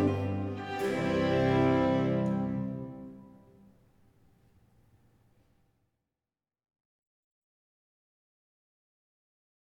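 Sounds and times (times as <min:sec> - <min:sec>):
concerto fast movement: 0:00.0 - 0:03.6.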